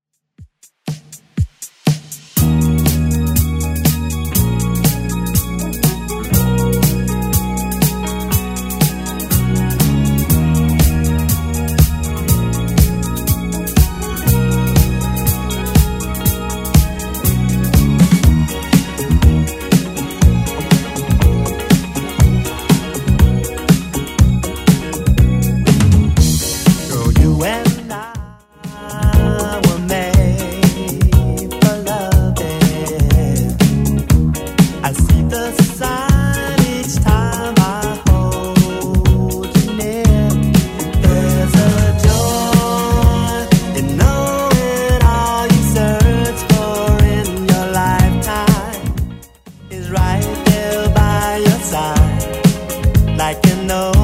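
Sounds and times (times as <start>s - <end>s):
1980s style music: 0.4s - 54.0s.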